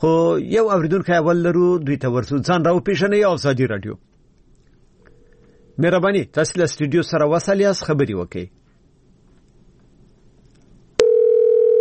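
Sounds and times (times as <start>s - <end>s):
speech: 0.0s - 4.1s, 5.8s - 8.6s
telephone line tone: 11.0s - 11.7s.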